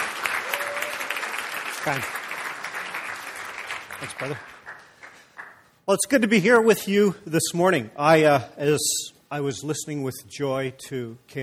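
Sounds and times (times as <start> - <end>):
audience applause welcoming a guest speaker at a morning gathering: 0.0 - 5.7
speech: 1.8 - 2.2, 4.0 - 4.5, 5.9 - 11.4.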